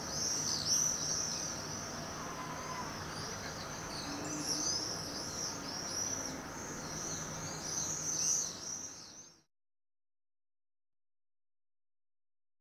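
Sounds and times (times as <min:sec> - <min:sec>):
swifts screaming: 0:00.2 - 0:08.9.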